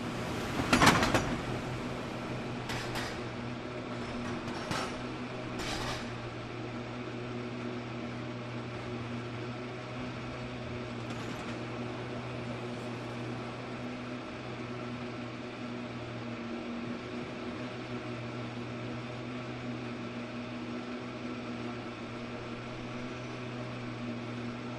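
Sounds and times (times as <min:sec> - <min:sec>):
cable car cable running: 0:00.0 - 0:24.7.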